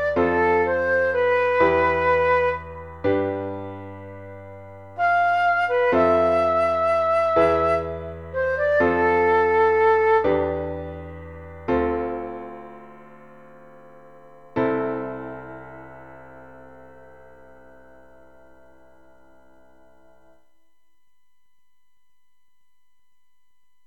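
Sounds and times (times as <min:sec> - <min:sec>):
slow waltz music: 0:00.0 - 0:19.0.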